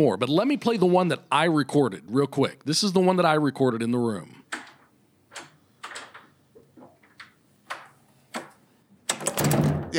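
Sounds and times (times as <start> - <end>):
speech: 0.0 - 4.4
bathroom door opening and closing: 4.5 - 9.9.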